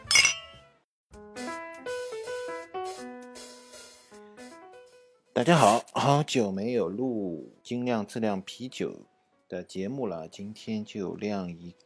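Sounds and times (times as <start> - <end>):
glasses clinking in a toast: 0.0 - 0.6
speech: 5.4 - 11.8.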